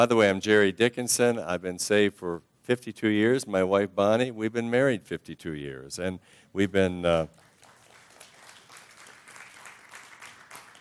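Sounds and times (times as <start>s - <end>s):
speech: 0.0s - 7.4s
audience applause: 7.6s - 10.7s.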